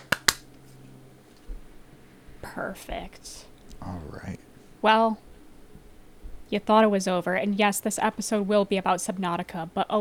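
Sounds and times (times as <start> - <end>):
single hand clap for audio sync: 0.0 - 0.5
speech: 2.4 - 5.3, 6.5 - 9.9.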